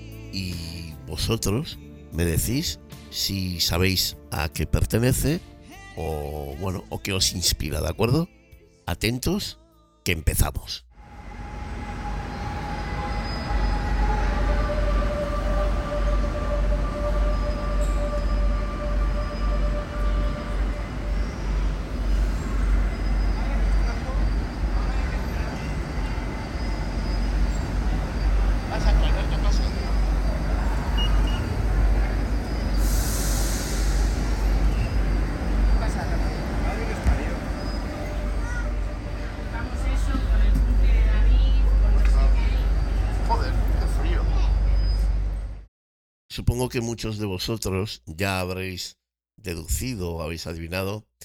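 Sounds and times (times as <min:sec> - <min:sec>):
speech: 0:00.4 - 0:10.9, 0:46.6 - 0:51.2
metro train rumbling: 0:10.9 - 0:45.7
air hiss: 0:32.6 - 0:35.2.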